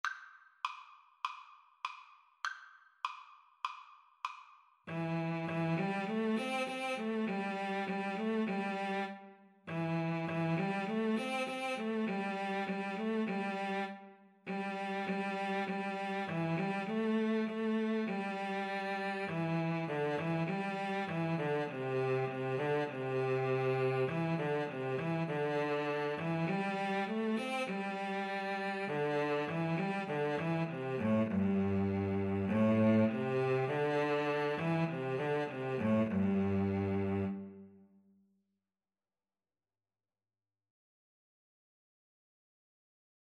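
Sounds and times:
cello duet: 4.9s - 37.8s.

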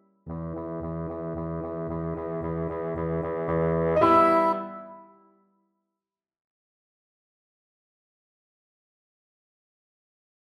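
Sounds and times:
bassoon: 0.3s - 5.3s.

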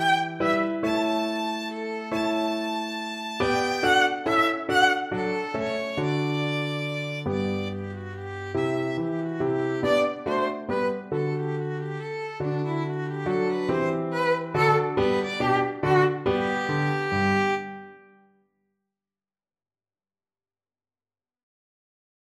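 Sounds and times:
piano trio: 0.0s - 17.8s.

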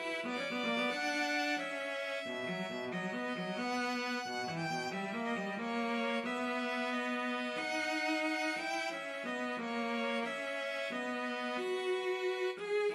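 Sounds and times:
cello in a duet with violin: 0.0s - 12.9s
violin in a duet with cello: 0.0s - 12.9s.

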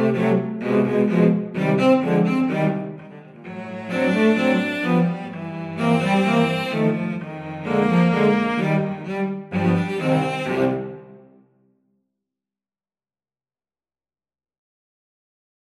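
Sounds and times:
cello quartet: 0.0s - 11.4s.

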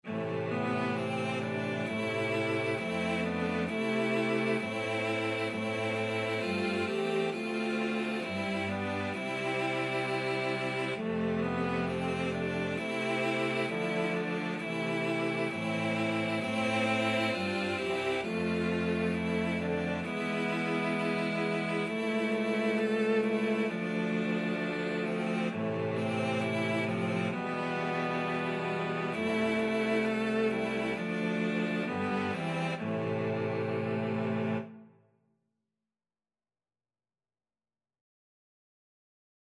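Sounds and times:
cello quartet: 0.0s - 34.8s.

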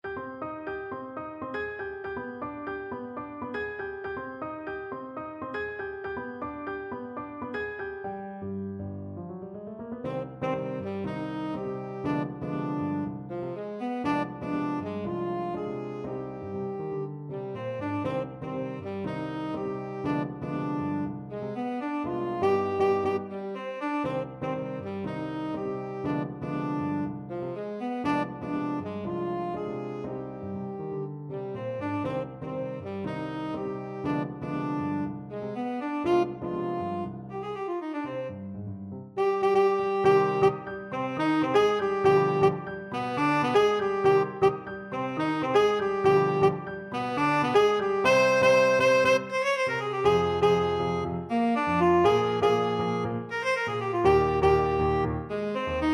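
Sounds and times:
tenor saxophone: 10.0s - 55.9s.

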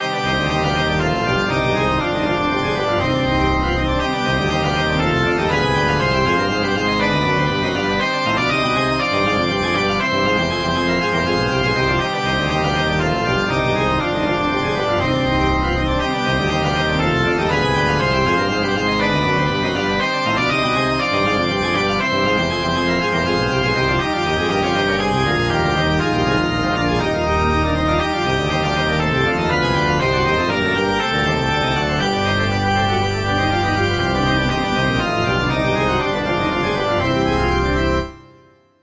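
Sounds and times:
organ: 0.0s - 38.6s.

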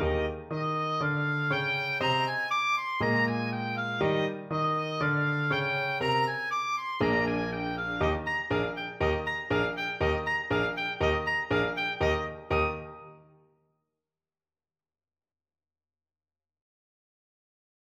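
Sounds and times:
oboe playing a lively dance tune: 0.0s - 13.3s.

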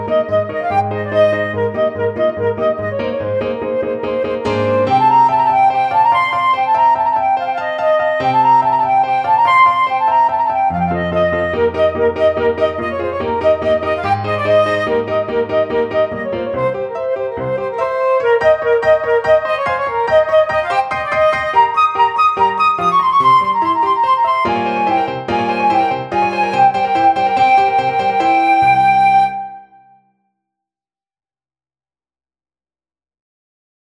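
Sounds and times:
flute playing Romanian folk dance: 0.0s - 30.0s.

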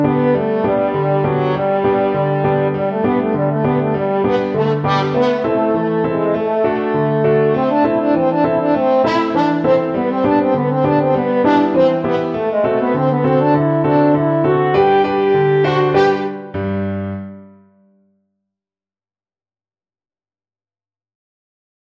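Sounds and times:
French horn: 0.0s - 16.5s.

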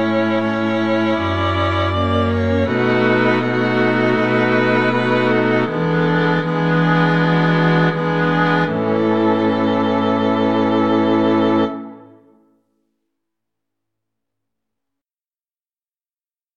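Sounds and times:
string quartet playing: 0.0s - 12.3s.

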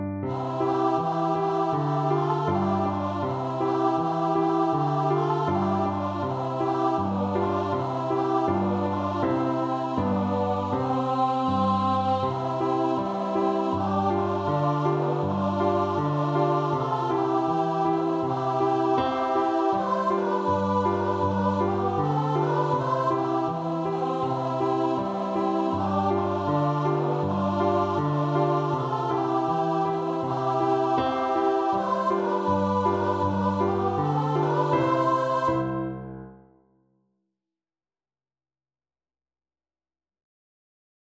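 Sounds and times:
choir singing: 0.2s - 36.2s.

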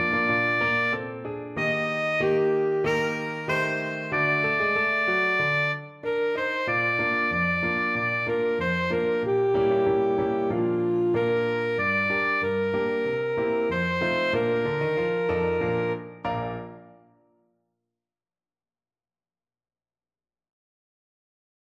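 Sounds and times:
alto saxophone: 0.0s - 16.9s.

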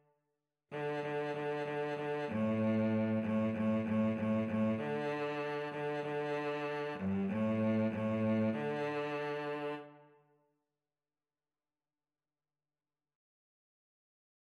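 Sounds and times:
viola and cello duet: 0.7s - 10.0s.

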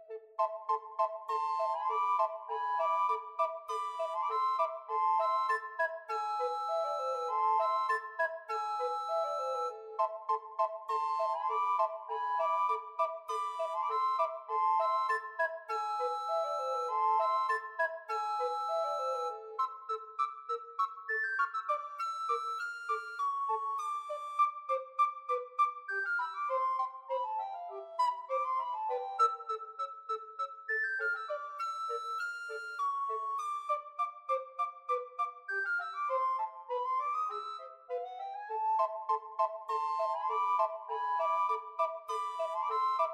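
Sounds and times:
recorder playing: 0.4s - 24.7s, 25.9s - 43.1s.

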